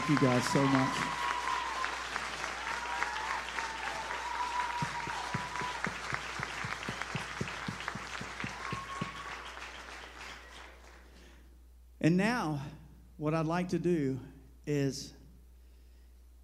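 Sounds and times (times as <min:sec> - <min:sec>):
audience round of applause: 0:00.0 - 0:11.2
speech: 0:00.1 - 0:01.2, 0:12.0 - 0:15.2.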